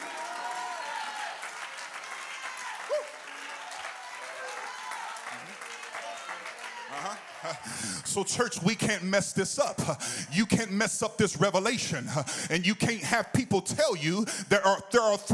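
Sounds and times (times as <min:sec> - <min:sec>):
audience clapping: 0:00.0 - 0:09.2
speech: 0:08.1 - 0:15.3.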